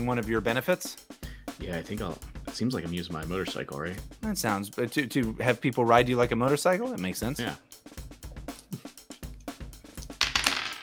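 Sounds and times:
speech: 0:00.0 - 0:07.7
dice clattering: 0:10.2 - 0:10.8.

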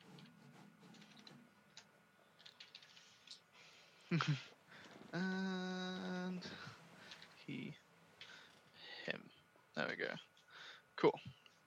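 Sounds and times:
typing on a computer keyboard into Photoshop: 0:02.4 - 0:03.1
speech: 0:04.1 - 0:04.5, 0:05.1 - 0:06.8, 0:07.5 - 0:07.8, 0:09.8 - 0:10.3.

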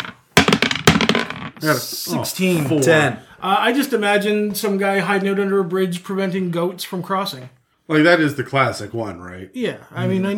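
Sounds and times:
dice clattering across a hard surface: 0:00.0 - 0:01.6
speech: 0:01.6 - 0:10.3.

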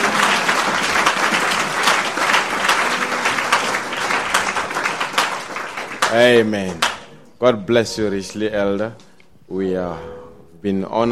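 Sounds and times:
crowd applause: 0:00.0 - 0:07.1
speech: 0:06.1 - 0:11.0.

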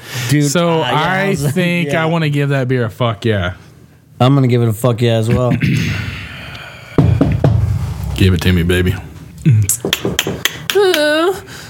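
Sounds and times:
speech: 0:00.3 - 0:03.6, 0:04.2 - 0:06.0, 0:08.2 - 0:10.2
knocking on a basement door: 0:07.0 - 0:07.7.

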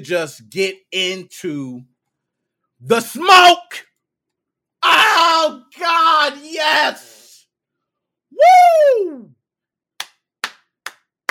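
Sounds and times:
speech: 0:00.0 - 0:01.9, 0:02.8 - 0:03.9, 0:04.8 - 0:07.1, 0:08.3 - 0:09.4
sharp hand claps: 0:10.0 - 0:11.2.

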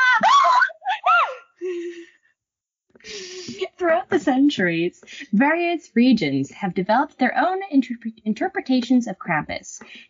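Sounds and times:
children laughing: 0:00.0 - 0:02.1
child gasping: 0:03.0 - 0:03.6
speech: 0:03.8 - 0:10.0.

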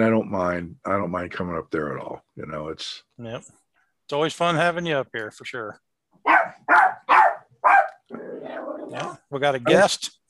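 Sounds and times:
speech: 0:00.0 - 0:07.0, 0:07.6 - 0:10.2
dog barking: 0:06.2 - 0:08.1.

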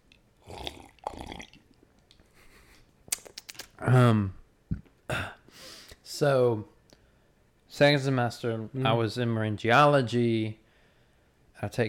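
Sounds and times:
person sipping a hot drink: 0:00.4 - 0:01.8
swallowing: 0:00.4 - 0:02.2
speech: 0:03.8 - 0:04.4, 0:06.2 - 0:06.7, 0:07.8 - 0:10.6, 0:11.6 - 0:11.8
person sighing: 0:03.8 - 0:06.0.

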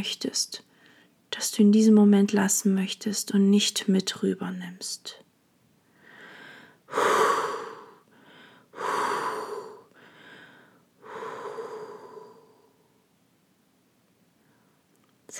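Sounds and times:
speech: 0:00.0 - 0:00.7, 0:01.3 - 0:05.2
deep slow breathing during a year-end meditation: 0:05.9 - 0:12.9.

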